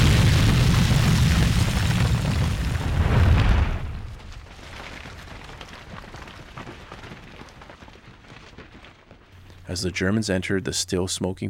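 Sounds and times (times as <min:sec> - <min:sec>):
fort ammunition store exploding: 0:00.0 - 0:04.5
speech: 0:09.7 - 0:11.4.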